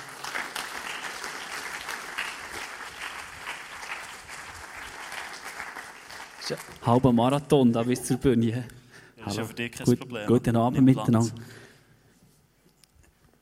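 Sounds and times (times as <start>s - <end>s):
audience clapping: 0.0s - 7.2s
speech: 6.5s - 11.6s.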